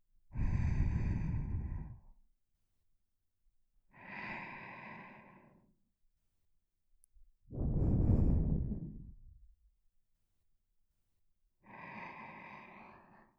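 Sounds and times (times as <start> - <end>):
person breathing in sleep: 0.3 - 2.2, 3.9 - 5.8, 7.5 - 9.4, 11.6 - 13.3.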